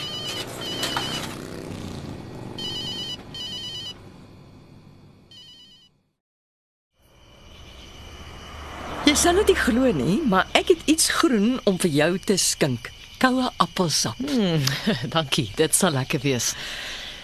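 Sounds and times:
telephone ringing: 0:00.0 - 0:01.4, 0:02.6 - 0:04.0, 0:05.3 - 0:06.0
speech: 0:09.2 - 0:17.0
laughter: 0:14.2 - 0:15.2.

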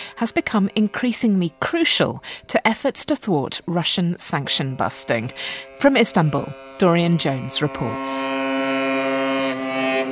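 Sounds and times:
cargo ship horn blast: 0:00.0 - 0:01.8, 0:04.2 - 0:10.0
speech: 0:00.2 - 0:08.4.

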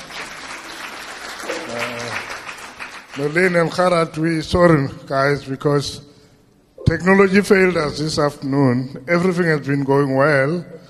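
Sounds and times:
audience clapping: 0:00.0 - 0:03.8
speech: 0:01.7 - 0:02.3, 0:03.2 - 0:06.1, 0:06.9 - 0:10.8.

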